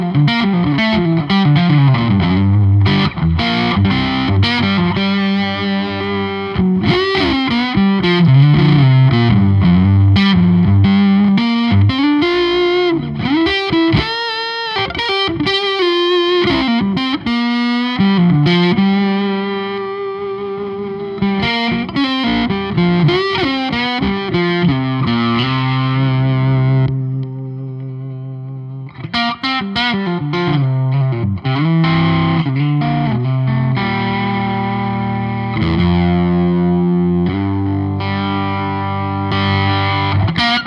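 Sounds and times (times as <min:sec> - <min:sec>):
overdriven semi hollow all mahogany electric guitars: 0:00.0 - 0:40.6.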